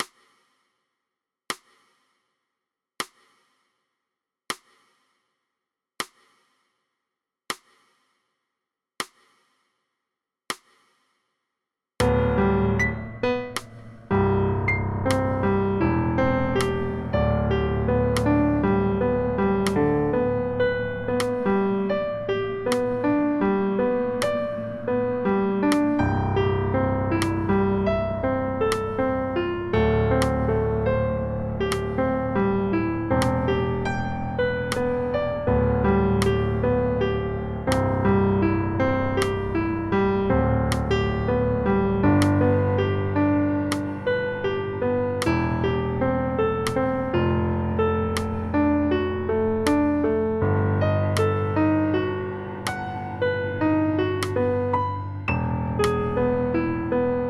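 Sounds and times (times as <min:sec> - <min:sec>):
solo piano: 0:12.0 - 0:57.2.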